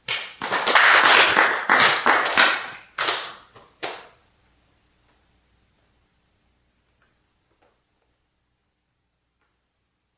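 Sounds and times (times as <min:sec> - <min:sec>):
group of people clapping their hands: 0:00.0 - 0:04.2.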